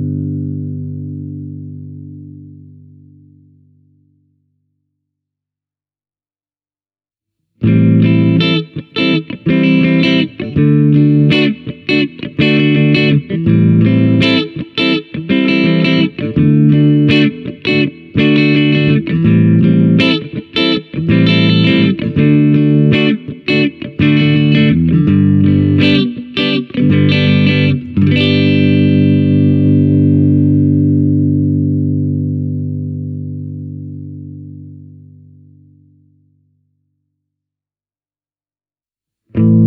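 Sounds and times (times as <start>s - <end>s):
clean guitar: 0.0s - 4.6s, 7.6s - 36.7s, 39.3s - 39.6s.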